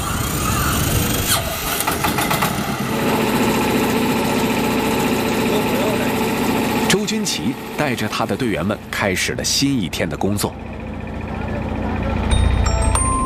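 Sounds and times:
engine starting up on the surface of Poyang Lake: 0.0 - 13.2
speech: 7.2 - 10.7.

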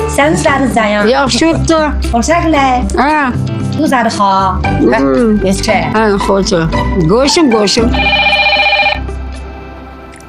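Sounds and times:
speech: 0.2 - 8.4
mobile phone ringing: 7.6 - 9.2.

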